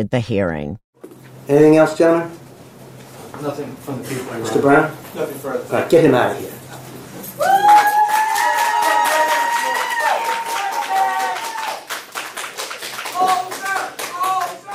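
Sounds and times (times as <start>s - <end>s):
speech: 0.0s - 0.8s, 1.5s - 2.4s, 3.4s - 6.6s
courtroom crowd cheering and jeering: 7.4s - 11.8s
people shouting: 7.4s - 11.8s, 13.2s - 14.7s
clapping: 7.5s - 14.7s.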